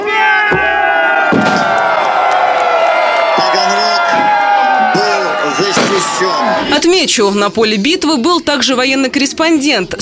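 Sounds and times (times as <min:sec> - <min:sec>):
battle reenactors shouting victory cries: 0:00.0 - 0:06.7
speech: 0:06.8 - 0:10.0.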